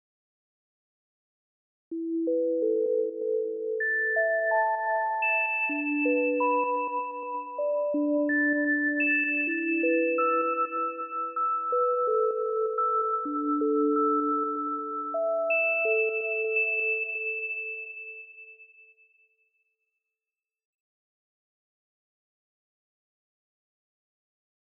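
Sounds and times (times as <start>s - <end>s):
sine tone: 2.0s - 19.2s.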